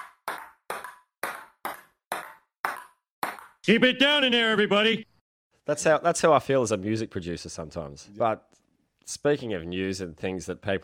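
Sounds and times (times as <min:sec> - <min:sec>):
table tennis ball pinging in a rally: 0:00.0 - 0:03.6
speech: 0:03.7 - 0:10.8.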